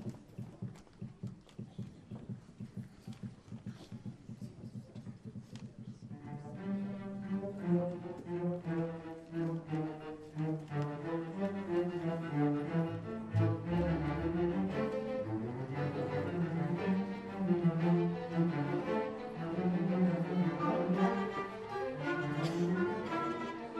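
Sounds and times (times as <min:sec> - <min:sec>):
fugue: 0:06.6 - 0:23.7.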